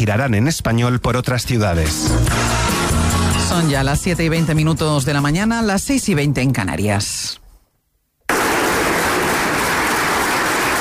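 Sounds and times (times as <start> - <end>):
speech: 0.0 - 2.9, 3.5 - 7.4
ovation applause: 8.3 - 10.7.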